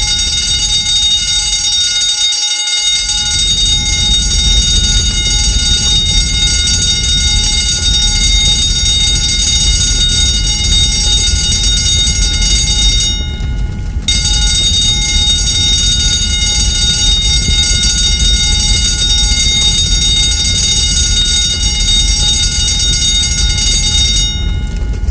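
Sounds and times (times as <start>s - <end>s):
school fire drill: 0.0s - 25.1s.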